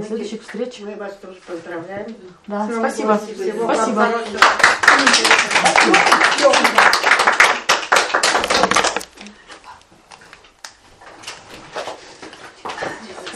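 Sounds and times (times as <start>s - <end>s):
speech: 0.0s - 7.1s
applause: 4.2s - 9.1s.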